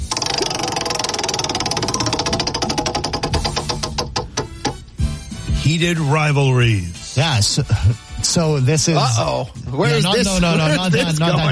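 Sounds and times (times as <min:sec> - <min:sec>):
spinning topic wheel clicking: 0:00.0 - 0:04.8
speech: 0:05.7 - 0:11.5
laughter: 0:07.5 - 0:08.1, 0:09.9 - 0:11.5.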